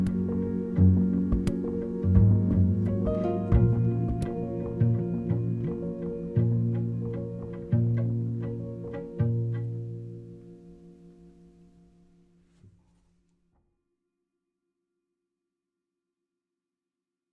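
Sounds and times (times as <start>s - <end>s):
music: 0.0s - 12.9s.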